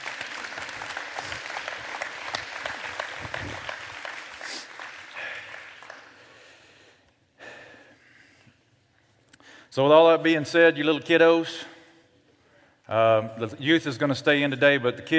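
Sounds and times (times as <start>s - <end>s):
audience clapping: 0.0s - 6.6s
speech: 9.8s - 11.7s, 12.9s - 15.1s.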